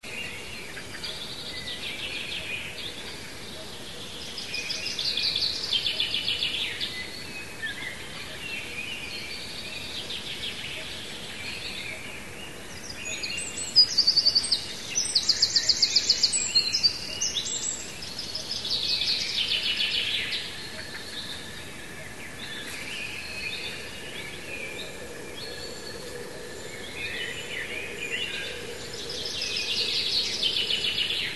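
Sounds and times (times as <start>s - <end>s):
birds chirping: 0.0s - 31.3s.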